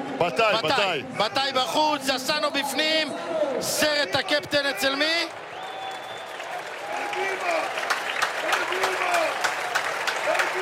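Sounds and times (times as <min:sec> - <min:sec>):
speech: 0:00.2 - 0:05.5
stadium crowd applause for substituted player: 0:03.8 - 0:10.6.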